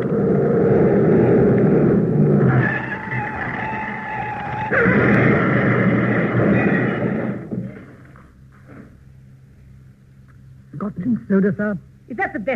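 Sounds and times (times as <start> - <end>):
car speeding with engine roar and whine: 0.0 - 8.2
speech: 11.3 - 12.5.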